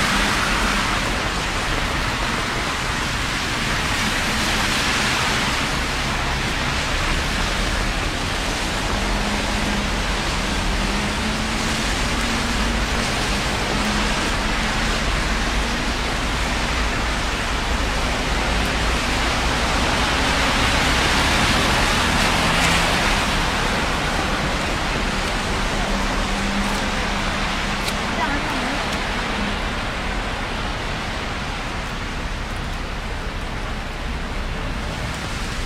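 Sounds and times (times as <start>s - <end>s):
low traffic rumble: 0.0s - 35.6s
rainfall in city streets at night: 0.0s - 35.6s.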